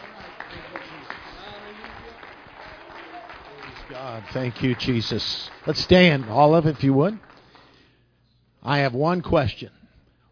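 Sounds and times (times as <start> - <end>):
audience hand clapping: 0.0 - 7.8
speech: 3.9 - 7.3, 8.6 - 9.8.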